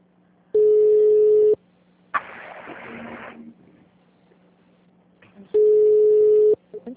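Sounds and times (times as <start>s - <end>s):
ringback tone on a phone line during a call: 0.6s - 1.6s, 5.6s - 6.6s
short burst of noise: 2.1s - 3.6s.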